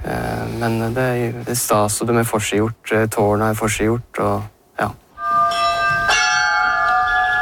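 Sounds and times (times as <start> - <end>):
speech: 0.6 - 5.0
old bells ringing together: 5.2 - 7.3.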